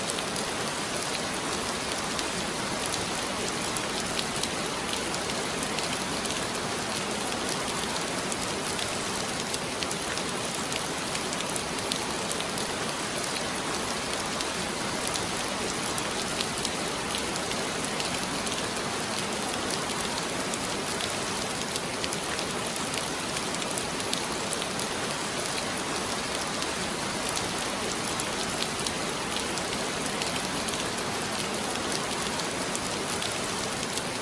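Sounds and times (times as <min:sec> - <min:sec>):
heavy rain: 0:00.0 - 0:34.2.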